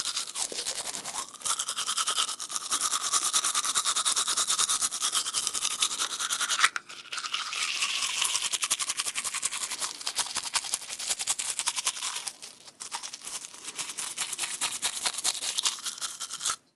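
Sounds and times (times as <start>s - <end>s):
toothbrush brushing: 0.0s - 16.6s.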